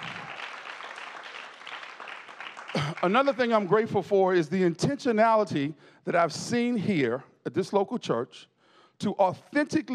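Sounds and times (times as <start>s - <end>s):
church congregation applauding the worship team: 0.0s - 4.1s
speech: 2.8s - 9.9s.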